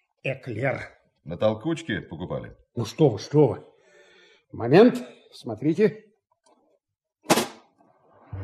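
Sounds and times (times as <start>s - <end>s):
speech: 0.2s - 3.7s, 4.5s - 6.1s
sharp pop: 7.2s - 7.8s.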